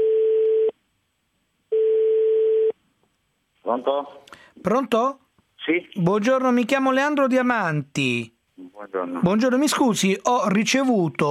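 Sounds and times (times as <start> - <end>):
telephone ringing tone before call answered: 0.0 - 0.7, 1.7 - 2.7
speech: 3.7 - 11.2.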